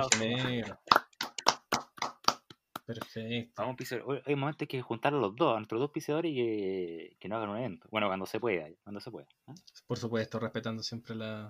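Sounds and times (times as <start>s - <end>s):
speech: 0.0s - 1.0s, 2.9s - 11.4s
applause, hands clapping: 0.0s - 3.2s.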